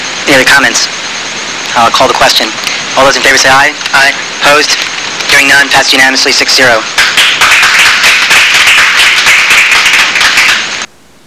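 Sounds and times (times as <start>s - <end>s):
speech: 0.3s - 1.0s, 1.8s - 7.5s
crowd applause: 6.9s - 10.9s.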